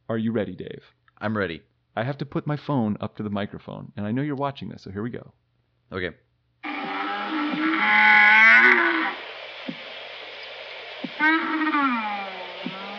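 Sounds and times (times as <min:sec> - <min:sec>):
speech: 0:00.1 - 0:06.9, 0:07.8 - 0:09.2, 0:11.2 - 0:12.1
camel vocalizing: 0:06.6 - 0:09.8, 0:11.0 - 0:12.9.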